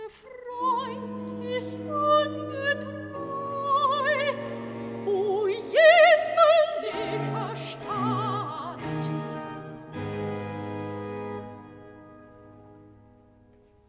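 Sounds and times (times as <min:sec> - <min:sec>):
soprano singing a cantata recitative: 0:00.0 - 0:11.1.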